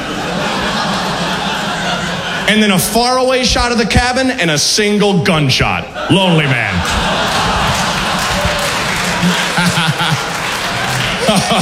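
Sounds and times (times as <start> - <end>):
laughter: 0.0 - 2.5, 6.0 - 11.6
speech: 2.5 - 7.2
audience clapping: 6.8 - 11.6.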